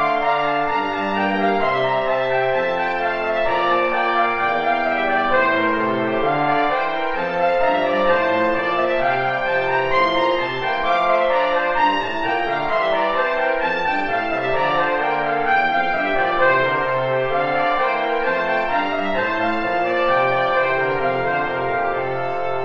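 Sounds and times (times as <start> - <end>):
two trombones playing: 0.0 - 22.6.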